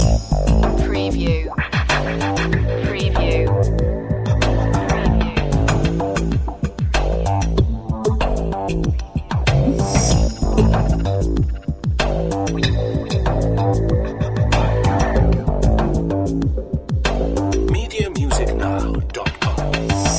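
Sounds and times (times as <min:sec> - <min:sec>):
music loop: 0:00.0 - 0:20.1.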